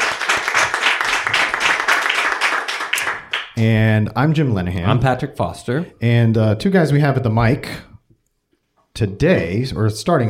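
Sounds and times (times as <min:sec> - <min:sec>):
crowd applause: 0:00.0 - 0:03.6
speech: 0:03.6 - 0:07.9, 0:09.0 - 0:10.2.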